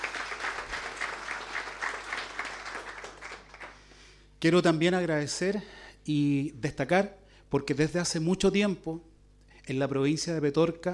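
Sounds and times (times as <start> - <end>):
audience applause: 0.0 - 3.8
speech: 4.4 - 10.9.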